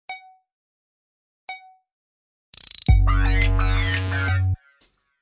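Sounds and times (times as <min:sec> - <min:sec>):
cool SMS tone: 0:03.0 - 0:04.6.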